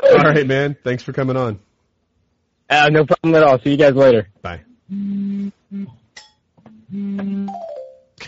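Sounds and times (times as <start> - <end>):
speech: 0.1 - 1.7, 2.7 - 6.0, 6.9 - 7.8
mobile phone vibrating with notifications: 4.9 - 6.0, 6.7 - 8.0.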